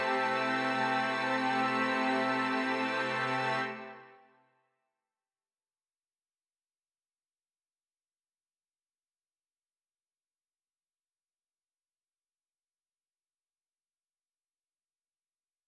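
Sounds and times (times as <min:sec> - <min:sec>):
passacaglia chords: 0:00.0 - 0:04.1.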